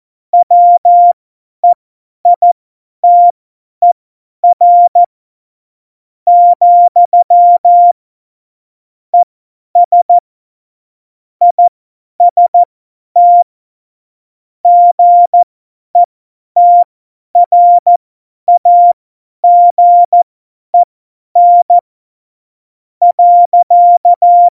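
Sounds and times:
CW morse code beeps: 0:00.4 - 0:01.8, 0:02.4 - 0:05.1, 0:06.3 - 0:08.0, 0:09.2 - 0:10.1, 0:11.5 - 0:13.4, 0:14.7 - 0:20.2, 0:20.8 - 0:21.8, 0:23.0 - 0:24.5.

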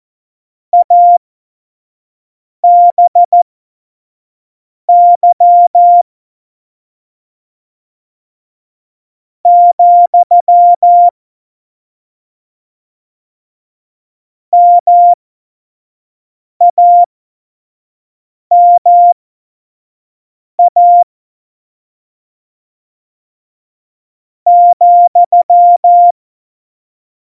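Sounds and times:
CW Morse code beeps: 0:00.8 - 0:01.2, 0:02.6 - 0:03.4, 0:04.9 - 0:06.0, 0:09.5 - 0:11.1, 0:14.6 - 0:15.2, 0:16.7 - 0:17.1, 0:18.5 - 0:19.2, 0:20.6 - 0:21.0, 0:24.5 - 0:26.1.

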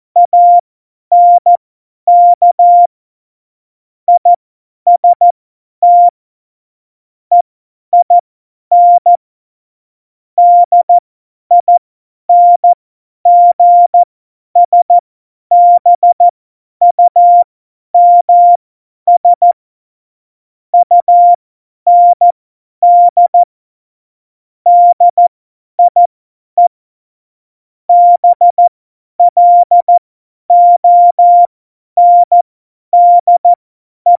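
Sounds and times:
CW Morse code at tempo 70: 0:00.2 - 0:02.9, 0:04.9 - 0:05.2, 0:05.8 - 0:06.1, 0:08.0 - 0:09.2, 0:10.4 - 0:16.3, 0:16.9 - 0:19.6, 0:20.8 - 0:23.5, 0:24.7 - 0:25.2, 0:25.8 - 0:26.7, 0:27.9 - 0:32.4, 0:33.0 - 0:34.1.

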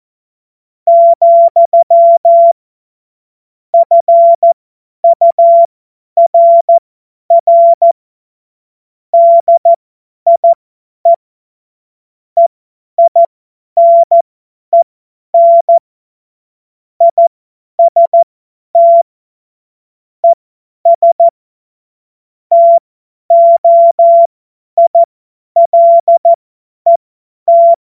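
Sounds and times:
CW Morse code beeps: 0:00.9 - 0:02.6, 0:03.8 - 0:08.0, 0:09.2 - 0:10.6, 0:12.4 - 0:14.2, 0:14.8 - 0:15.8, 0:17.0 - 0:18.2, 0:18.8 - 0:19.0, 0:20.2 - 0:21.3, 0:22.5 - 0:26.3, 0:26.9 - 0:27.8.

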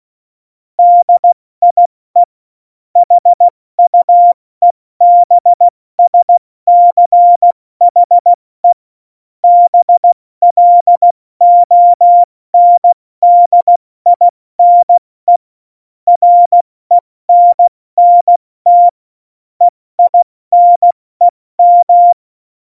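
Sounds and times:
CW Morse code at tempo 70: 0:00.8 - 0:02.3, 0:03.0 - 0:04.4, 0:05.0 - 0:08.3, 0:09.4 - 0:15.4, 0:16.1 - 0:19.0, 0:20.0 - 0:22.2.

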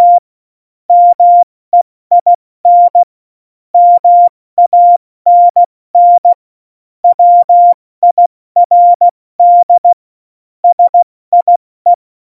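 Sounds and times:
CW Morse code beeps: 0:00.0 - 0:00.2, 0:00.9 - 0:01.4, 0:02.1 - 0:03.1, 0:03.8 - 0:06.3, 0:07.0 - 0:10.0, 0:10.6 - 0:12.0.

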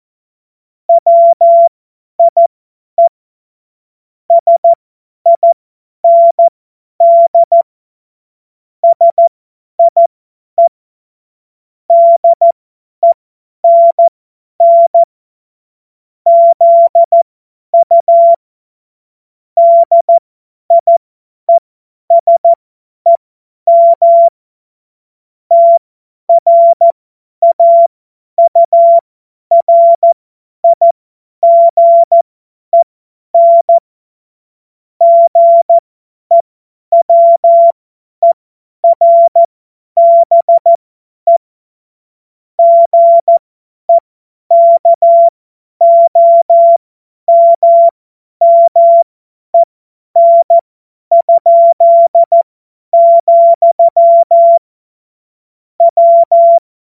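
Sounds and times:
CW Morse code beeps: 0:00.9 - 0:03.1, 0:04.3 - 0:07.7, 0:08.8 - 0:10.7, 0:11.9 - 0:15.1, 0:16.3 - 0:17.2, 0:17.8 - 0:18.4, 0:19.6 - 0:24.3, 0:25.5 - 0:32.2, 0:33.4 - 0:33.8, 0:35.0 - 0:41.4, 0:42.6 - 0:54.7, 0:55.8 - 0:56.7.

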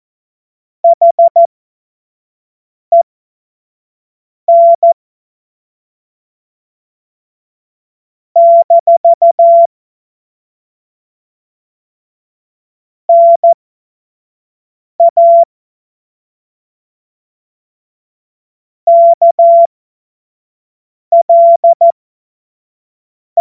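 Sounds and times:
CW Morse code beeps: 0:00.8 - 0:01.5, 0:04.5 - 0:05.0, 0:08.4 - 0:09.7, 0:13.1 - 0:13.6, 0:15.0 - 0:15.5, 0:18.9 - 0:19.7, 0:21.2 - 0:21.9.

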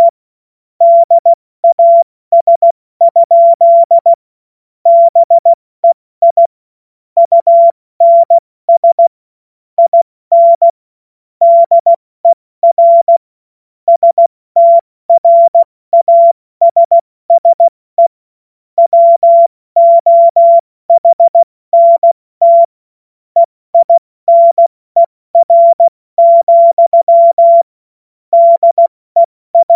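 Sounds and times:
CW Morse code beeps: 0:00.8 - 0:04.2, 0:04.9 - 0:06.5, 0:07.2 - 0:09.1, 0:09.8 - 0:10.8, 0:11.4 - 0:13.2, 0:13.9 - 0:18.1, 0:18.8 - 0:22.7, 0:23.4 - 0:27.7, 0:28.3 - 0:29.7.

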